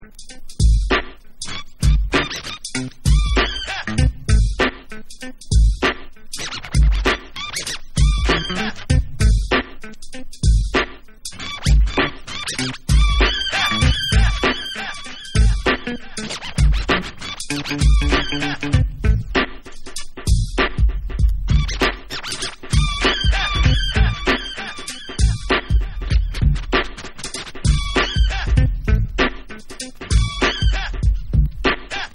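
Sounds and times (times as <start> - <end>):
instrumental mix: 0.0 - 32.1.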